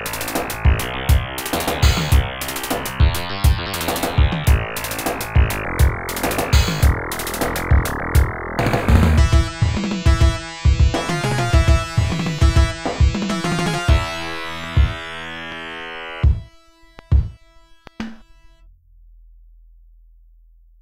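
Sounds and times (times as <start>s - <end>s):
YM2612 sound chip music: 0.0s - 19.0s.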